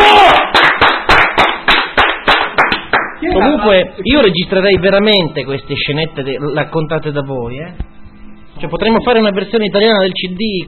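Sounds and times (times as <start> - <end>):
group clapping in rhythm: 0.1 - 3.4
speech: 3.6 - 7.9, 8.6 - 10.6.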